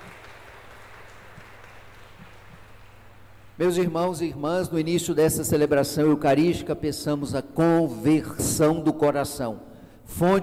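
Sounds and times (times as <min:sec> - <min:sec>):
audience applause: 0:00.0 - 0:03.4
speech: 0:03.6 - 0:10.4.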